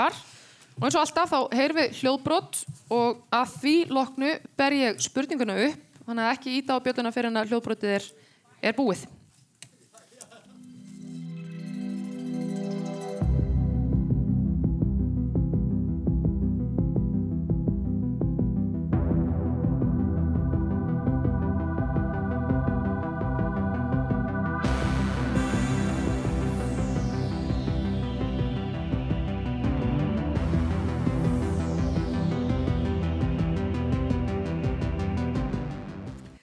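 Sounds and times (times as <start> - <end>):
speech: 0.0 - 9.2
synth theme music of a TV series: 10.6 - 36.4.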